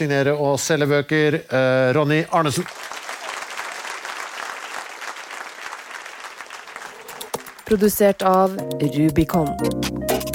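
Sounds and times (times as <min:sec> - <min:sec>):
speech: 0:00.0 - 0:03.0, 0:07.7 - 0:10.1
audience applauding a guest at a live event: 0:02.4 - 0:08.0.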